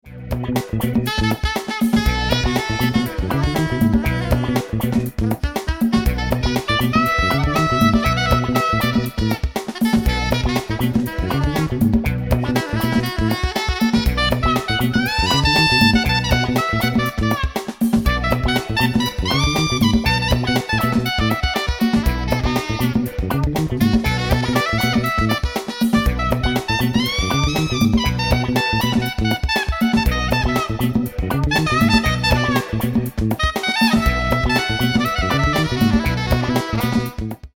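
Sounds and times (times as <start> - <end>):
funk music: 0.0 - 37.5.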